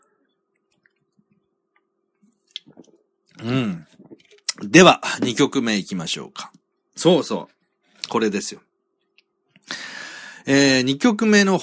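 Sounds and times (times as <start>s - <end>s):
soft wet slurping sips of beer: 2.5s - 4.6s
speech: 3.4s - 3.8s, 4.7s - 8.7s, 10.4s - 11.6s.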